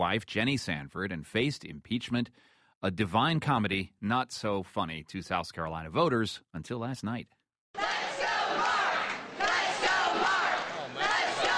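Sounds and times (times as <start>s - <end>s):
speech: 0.0s - 7.8s
supporters cheering: 7.8s - 11.5s.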